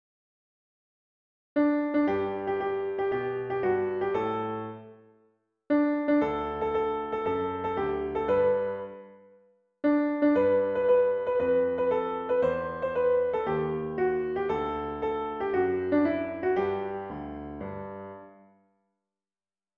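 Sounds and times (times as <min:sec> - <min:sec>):
piano: 0:01.6 - 0:18.7.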